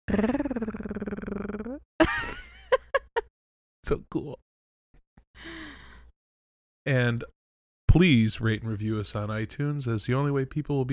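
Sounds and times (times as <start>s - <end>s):
speech: 0.1s - 0.4s, 3.9s - 4.4s, 6.8s - 10.9s
person imitating a cat purring: 0.1s - 1.8s
short vocal chirps: 0.1s - 1.8s.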